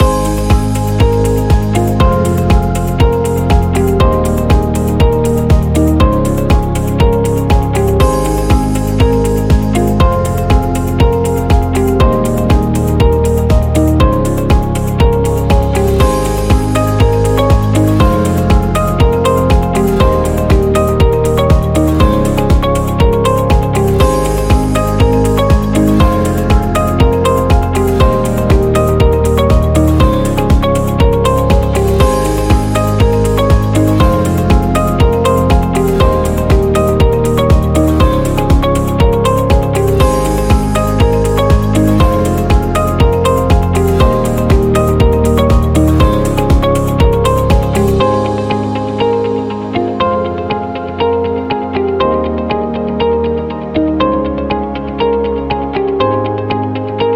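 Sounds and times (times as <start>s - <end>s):
corporate music loop: 0.0s - 57.1s.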